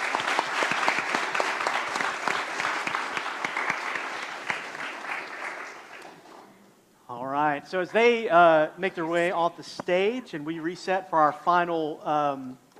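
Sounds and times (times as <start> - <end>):
crowd clapping: 0.0 - 6.3
speech: 7.7 - 12.6.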